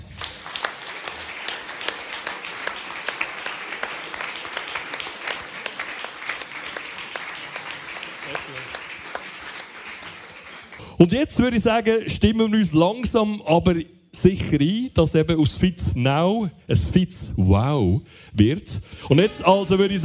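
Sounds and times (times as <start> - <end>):
audience applause: 0.0 - 11.0
speech: 11.0 - 20.0.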